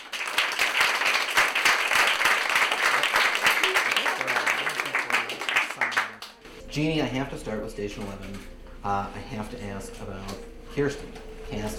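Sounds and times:
audience applause: 0:00.0 - 0:06.5
speech: 0:06.8 - 0:11.7.

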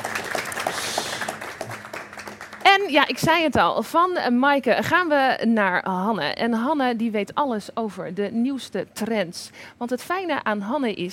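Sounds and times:
audience applause: 0:00.0 - 0:03.0
speech: 0:02.8 - 0:11.1.

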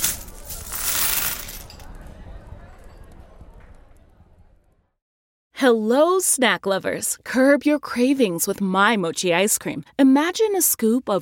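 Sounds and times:
coins clattering across a hard tabletop: 0:00.0 - 0:01.8
speech: 0:05.6 - 0:11.1.

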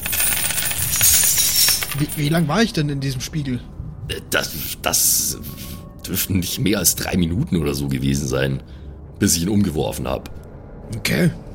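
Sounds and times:
ringing and jingling: 0:00.0 - 0:02.8
speech: 0:02.0 - 0:11.4.

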